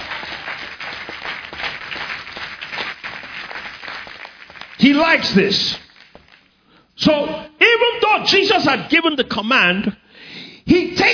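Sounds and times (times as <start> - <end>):
crowd clapping: 0.0 - 6.6
speech: 4.8 - 5.8, 7.0 - 10.0.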